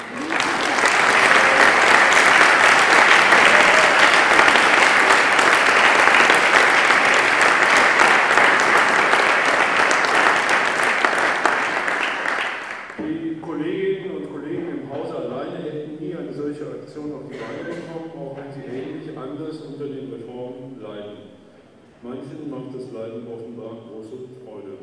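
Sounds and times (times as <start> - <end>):
faint crowd noise: 0.0 - 11.9, 12.6 - 24.8
conference audience applause: 0.0 - 13.0.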